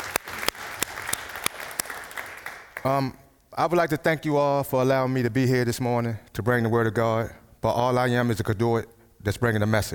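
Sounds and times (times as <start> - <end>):
audience applause: 0.0 - 2.9
speech: 2.8 - 9.9.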